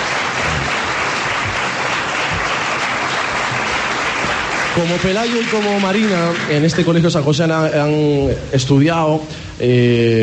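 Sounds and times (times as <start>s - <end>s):
audience applause: 0.0s - 7.3s
speech: 4.8s - 10.2s.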